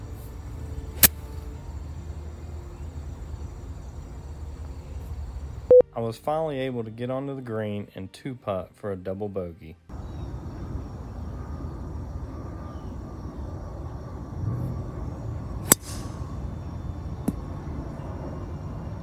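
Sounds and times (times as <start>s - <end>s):
steady low rumbling background: 0.0s - 5.8s, 9.9s - 19.0s
speech: 6.0s - 10.0s
golf driver smacked against the tee box: 15.7s - 16.1s.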